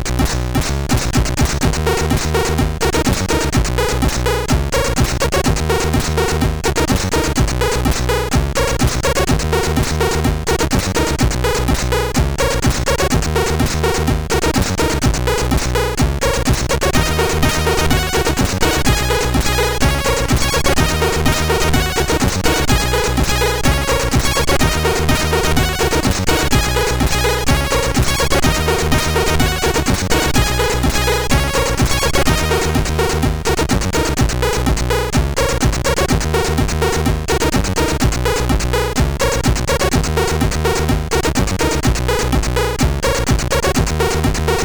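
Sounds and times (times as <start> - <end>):
SID chiptune music on a CSG8580R5 chip: 0.1 - 44.6.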